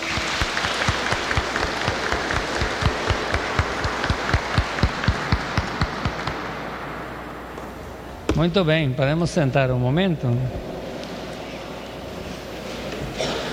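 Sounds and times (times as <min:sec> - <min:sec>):
audience applause: 0:00.0 - 0:06.7
speech: 0:08.4 - 0:10.7.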